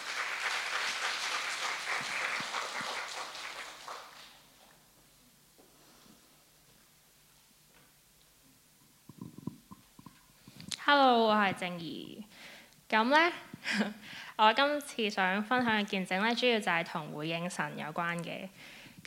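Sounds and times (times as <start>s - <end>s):
audience applause: 0.0s - 4.6s
speech: 10.9s - 12.2s, 12.9s - 19.0s.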